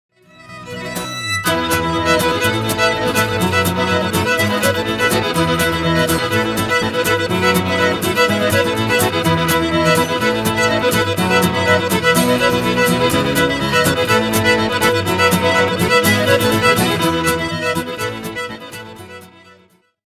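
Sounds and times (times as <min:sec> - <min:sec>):
traditional folk band playing: 0:00.4 - 0:19.4.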